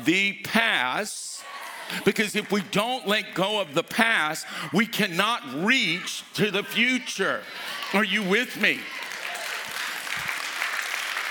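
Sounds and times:
speech: 0:00.0 - 0:09.0
audience clapping: 0:01.5 - 0:03.4, 0:07.4 - 0:11.2.

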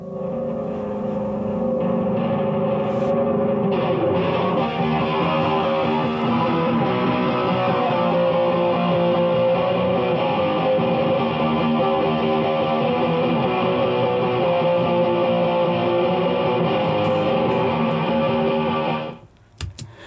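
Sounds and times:
distorted tone through overdrive and reverb effect units: 0:00.0 - 0:19.2.

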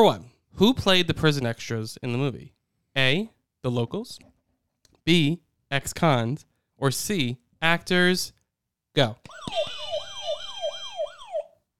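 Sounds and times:
speech: 0:00.0 - 0:04.3, 0:05.0 - 0:08.4, 0:09.0 - 0:09.8
game show answer buzzer with warbling siren-like wail: 0:09.3 - 0:11.5.

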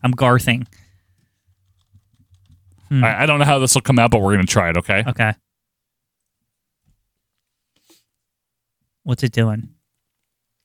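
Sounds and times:
speech: 0:00.0 - 0:00.8, 0:02.9 - 0:05.4, 0:09.0 - 0:09.8
typing on a computer keyboard: 0:00.6 - 0:02.9, 0:10.0 - 0:10.6.

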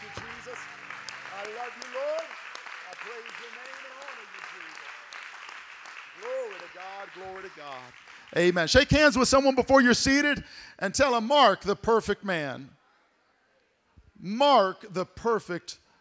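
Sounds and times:
audience clapping hands: 0:00.0 - 0:09.6
speech: 0:06.8 - 0:12.8, 0:14.2 - 0:15.8.

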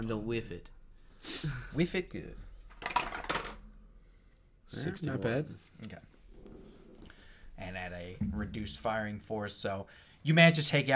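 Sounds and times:
speech: 0:00.0 - 0:02.5, 0:04.7 - 0:06.1, 0:07.6 - 0:10.9
percentile dice rolling on a table: 0:02.7 - 0:03.6.

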